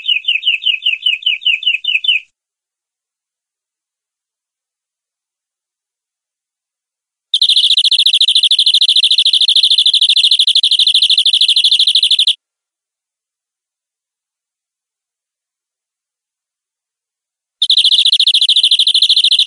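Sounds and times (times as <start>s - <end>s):
domestic canary giving long rolling song: 0.0s - 2.3s, 7.4s - 12.4s, 17.6s - 19.4s.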